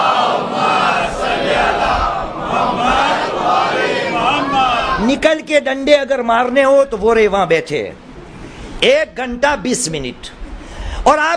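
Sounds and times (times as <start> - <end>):
large audience reciting salawat in unison: 0.0 - 5.0
speech: 5.2 - 8.1, 8.8 - 10.4, 11.0 - 11.3.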